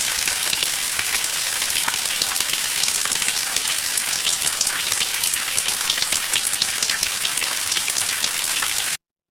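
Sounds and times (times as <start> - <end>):
rain: 0.0 - 9.0.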